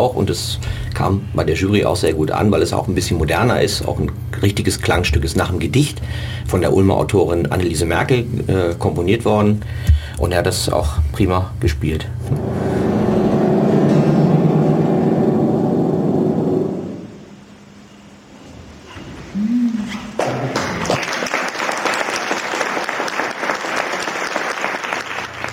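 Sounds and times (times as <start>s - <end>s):
speech: 0.0s - 12.7s
low dense rumble: 12.2s - 17.7s
audience applause: 20.4s - 25.5s.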